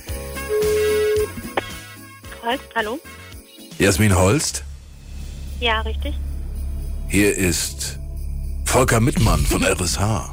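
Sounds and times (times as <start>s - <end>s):
telephone ringing: 0.3s - 1.7s
speech: 2.4s - 3.2s, 3.8s - 4.7s, 5.6s - 6.3s, 7.1s - 8.0s, 8.7s - 10.3s.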